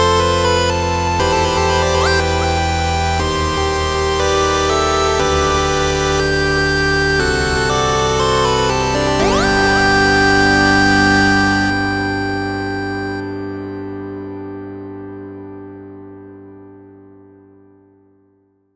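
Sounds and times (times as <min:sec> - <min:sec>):
fanfare: 0:00.2 - 0:05.5, 0:06.2 - 0:13.6.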